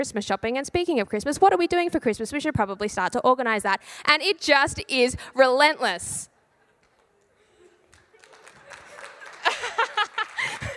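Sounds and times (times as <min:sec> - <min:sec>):
speech: 0:00.0 - 0:06.3
laughter: 0:06.4 - 0:10.7
audience applause: 0:07.8 - 0:10.7.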